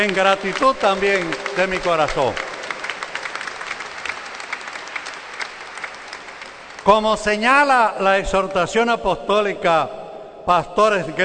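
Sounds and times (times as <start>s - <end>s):
speech: 0.0s - 2.5s, 6.8s - 11.2s
audience applause: 0.0s - 7.0s.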